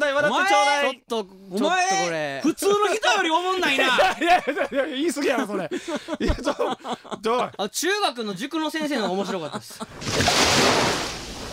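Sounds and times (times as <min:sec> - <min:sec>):
speech: 0:00.2 - 0:11.0
laughter: 0:03.4 - 0:07.6, 0:08.7 - 0:10.0
big ocean wave breaking: 0:09.9 - 0:11.5.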